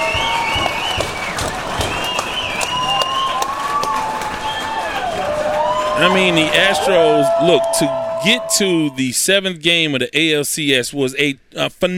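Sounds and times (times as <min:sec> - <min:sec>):
crowd applauding: 0:00.0 - 0:09.0
high whistles: 0:00.0 - 0:09.0
voices cheering: 0:00.0 - 0:09.1
speech: 0:06.0 - 0:11.9.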